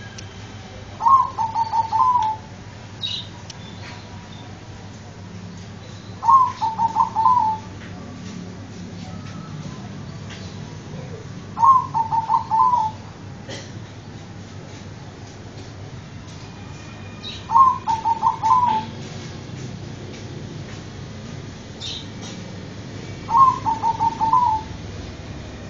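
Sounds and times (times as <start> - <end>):
zebra dove cooing: 1.0 - 2.5, 6.2 - 7.7, 11.0 - 13.0, 17.5 - 19.0, 23.3 - 24.8.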